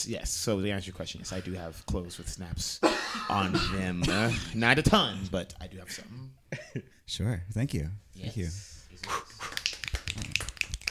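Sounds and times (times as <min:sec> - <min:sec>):
speech: 0:00.0 - 0:09.5
hand clapping: 0:09.0 - 0:10.8.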